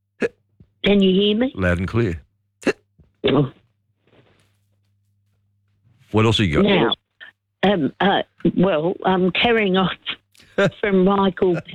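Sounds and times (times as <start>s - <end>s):
speech: 0.8s - 2.2s, 3.2s - 3.6s, 6.1s - 7.0s, 7.6s - 11.7s
hiccup: 2.6s - 3.6s.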